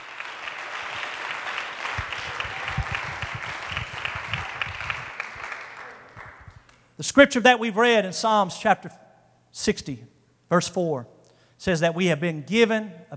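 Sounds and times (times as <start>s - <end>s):
audience clapping hands: 0.0s - 6.9s
speech: 7.0s - 9.0s, 9.6s - 13.1s.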